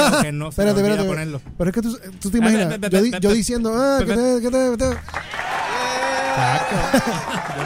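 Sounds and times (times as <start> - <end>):
laughter: 0.0 - 1.0, 5.4 - 7.6
speech: 0.1 - 5.5, 6.4 - 7.6
stadium applause: 4.9 - 7.6
crowd cheering and shouting: 5.2 - 7.6.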